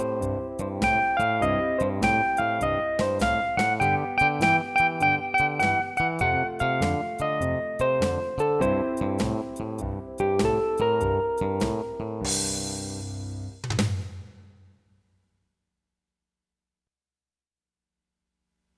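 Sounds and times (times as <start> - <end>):
barrelhouse blues music: 0.0 - 13.5.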